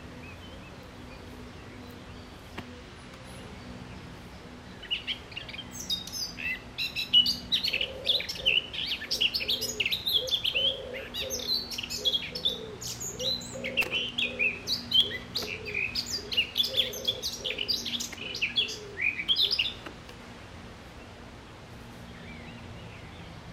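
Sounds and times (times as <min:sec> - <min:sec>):
Eurasian blackcap warbling: 0:04.8 - 0:19.8
low cooing: 0:07.6 - 0:19.8.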